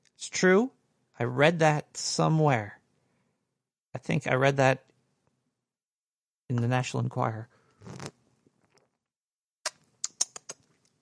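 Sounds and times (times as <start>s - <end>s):
speech: 0.2s - 2.8s, 3.9s - 4.9s, 6.5s - 8.0s
sip of a fizzy bubbling drink: 7.8s - 9.0s.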